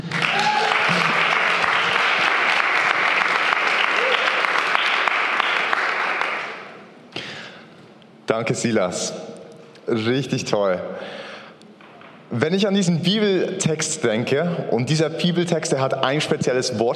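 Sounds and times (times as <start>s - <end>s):
audience applause: 0.0s - 6.7s
speech: 8.4s - 9.3s, 9.9s - 11.3s, 12.3s - 16.9s.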